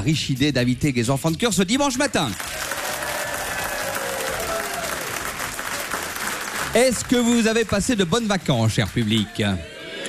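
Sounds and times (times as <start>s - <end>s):
speech: 0.0s - 2.7s, 6.8s - 9.7s
audience applause: 2.2s - 9.7s.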